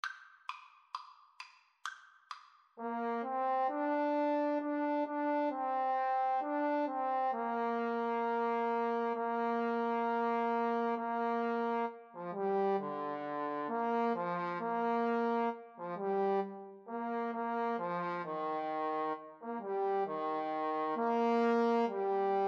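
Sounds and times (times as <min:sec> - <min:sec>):
trombone duet: 0:02.8 - 0:22.4.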